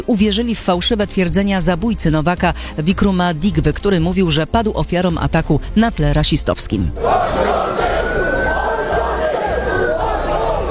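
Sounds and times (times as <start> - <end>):
speech: 0.0 - 8.2
rioting crowd shouting in Southampton: 7.0 - 10.7.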